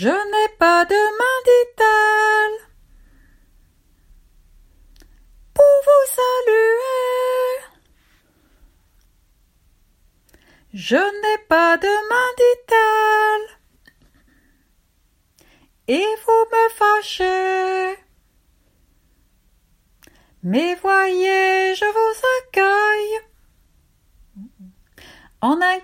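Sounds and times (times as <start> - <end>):
person singing a second song verse in fragments: 0.0 - 2.7, 5.5 - 7.8, 10.7 - 13.6, 15.9 - 18.1, 20.4 - 23.3.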